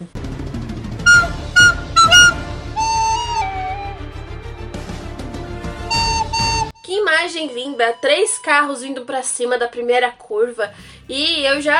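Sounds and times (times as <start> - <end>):
little flute sound effect: 1.0 - 4.2, 5.8 - 7.2
speech: 7.2 - 11.7.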